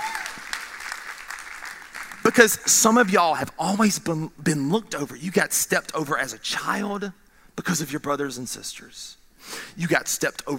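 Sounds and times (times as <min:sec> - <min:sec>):
audience clapping: 0:00.0 - 0:03.2
speech: 0:02.3 - 0:10.5.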